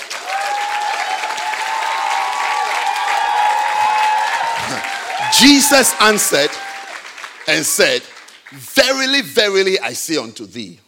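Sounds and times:
faint cheer: 0:00.0 - 0:07.2
audience clapping: 0:00.0 - 0:10.0
speech: 0:05.4 - 0:06.6, 0:07.5 - 0:10.8.

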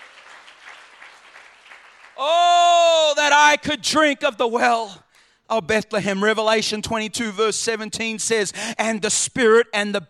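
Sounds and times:
church congregation clapping in worship: 0:00.0 - 0:03.6
speech: 0:02.2 - 0:02.5, 0:03.5 - 0:10.0.

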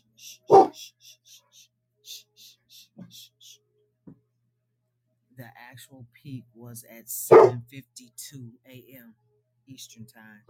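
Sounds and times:
dog barking at noise outside: 0:00.5 - 0:00.8, 0:07.3 - 0:07.6
speech: 0:06.0 - 0:10.4.

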